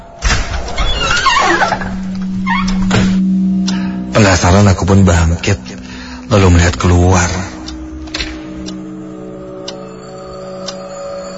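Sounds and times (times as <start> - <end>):
low steady hum: 0.0 - 11.3
door hinge creaking as a door opens: 0.2 - 3.3
speech: 4.2 - 5.7, 6.3 - 7.5.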